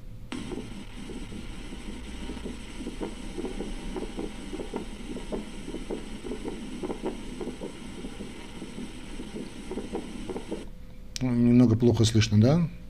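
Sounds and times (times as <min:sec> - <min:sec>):
hiss and hum: 0:00.0 - 0:12.8
heart sound thumping beats: 0:00.3 - 0:10.7
speech: 0:11.3 - 0:12.8.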